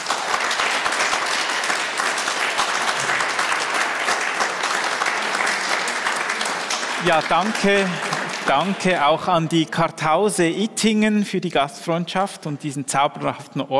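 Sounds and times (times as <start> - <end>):
audience applause: 0.0 - 9.7
speech: 7.0 - 13.7.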